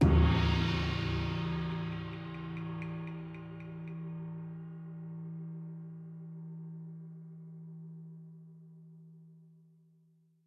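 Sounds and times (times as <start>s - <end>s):
music sting: 0.0s - 4.2s.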